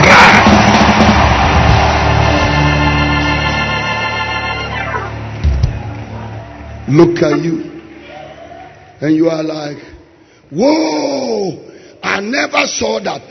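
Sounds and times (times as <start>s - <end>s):
audience screaming: 0.0s - 9.0s
speech: 6.9s - 7.7s, 9.0s - 9.9s, 10.5s - 13.2s.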